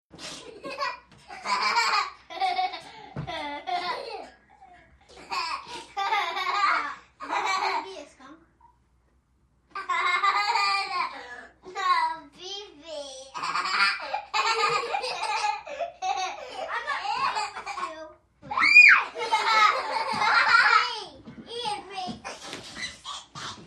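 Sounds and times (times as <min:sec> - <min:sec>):
five-year-old children laughing: 0:00.2 - 0:08.0, 0:09.7 - 0:11.8, 0:13.4 - 0:21.0.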